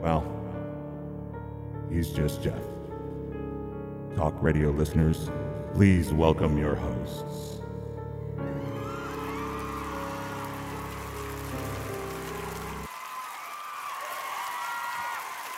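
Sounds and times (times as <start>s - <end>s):
speech: 0.0s - 0.4s, 1.9s - 2.7s, 4.2s - 7.6s
canned applause track: 8.5s - 15.5s
children cheering: 8.5s - 15.5s.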